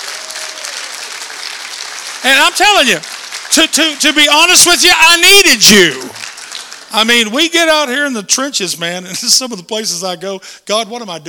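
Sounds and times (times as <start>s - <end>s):
audience applause: 0.0s - 7.5s
speech: 2.2s - 6.2s, 6.9s - 11.2s.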